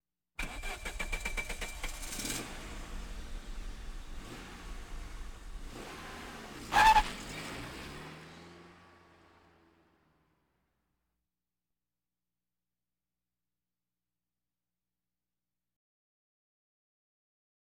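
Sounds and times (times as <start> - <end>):
various automobiles: 0.4 - 10.7.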